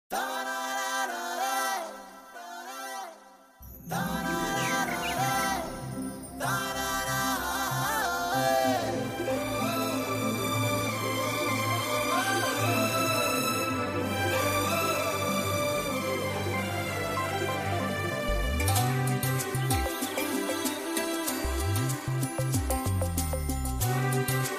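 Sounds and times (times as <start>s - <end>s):
karaoke singing: 0.1s - 3.2s, 3.8s - 24.5s.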